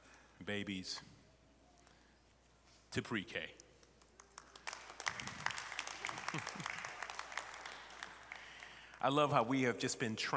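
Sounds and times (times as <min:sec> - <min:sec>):
speech: 0:00.5 - 0:01.1, 0:02.9 - 0:03.6, 0:06.3 - 0:06.8, 0:09.0 - 0:10.3
crowd applause: 0:04.2 - 0:09.0.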